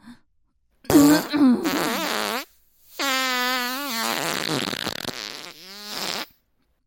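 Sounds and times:
loud farts: 0.9 - 6.4.

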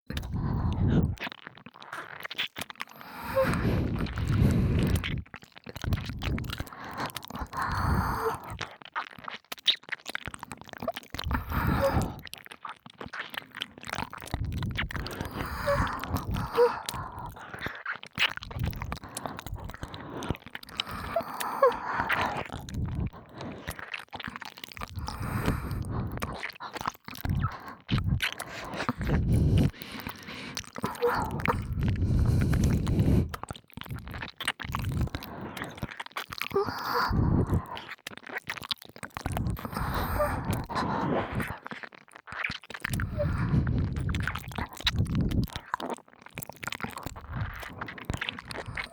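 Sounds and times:
binaural ear licking: 0.1 - 48.9
breathy exhales: 3.0 - 5.0, 11.4 - 12.2, 15.1 - 17.3, 28.8 - 33.4, 36.6 - 37.6, 39.6 - 41.5, 43.0 - 43.9, 48.6 - 48.9.

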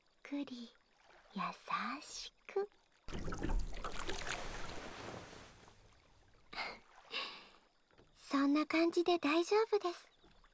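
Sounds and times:
soft water swells: 0.0 - 8.4
speech: 0.3 - 4.4, 8.4 - 10.1
water lapping against a gently rocking boat: 0.8 - 8.3.

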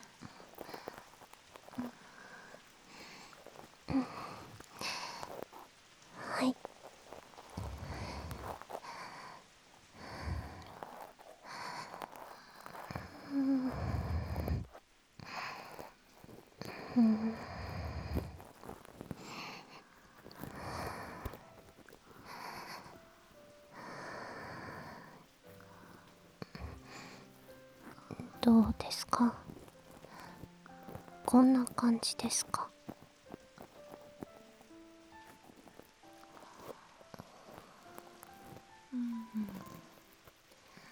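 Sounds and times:
breathing close to the ear: 0.0 - 31.2, 32.5 - 39.9, 40.6 - 40.9
speech: 28.5 - 29.4, 31.3 - 32.5.

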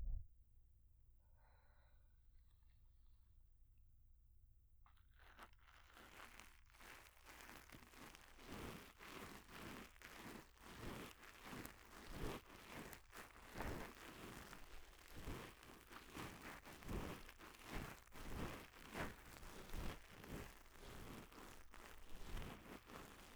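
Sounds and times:
ear cleaning: 5.2 - 23.3.

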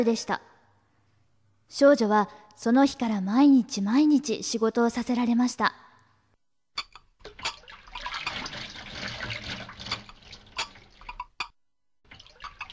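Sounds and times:
speech: 0.0 - 0.5, 1.7 - 5.8
washing dishes: 6.8 - 12.7.

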